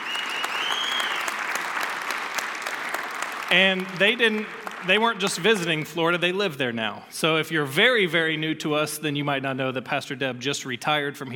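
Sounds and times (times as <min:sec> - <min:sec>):
church congregation applauding to welcome guest pastors: 0:00.0 - 0:05.9
speech: 0:03.5 - 0:11.3.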